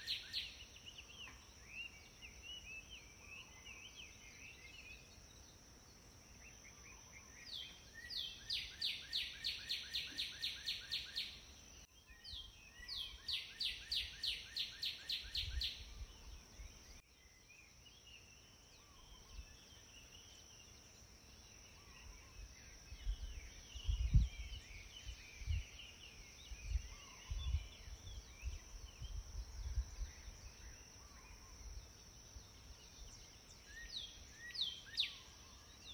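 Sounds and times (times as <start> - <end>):
birds singing in nature: 0.0 - 35.9.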